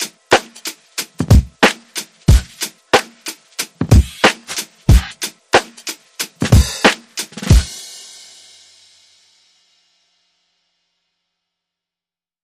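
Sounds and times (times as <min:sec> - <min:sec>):
music beat: 0:00.0 - 0:09.7.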